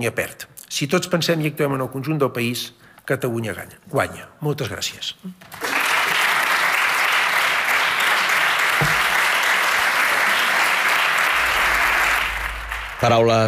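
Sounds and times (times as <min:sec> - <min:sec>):
speech: 0:00.0 - 0:05.6, 0:13.0 - 0:13.4
parliamentary applause in a large hall: 0:05.6 - 0:13.4.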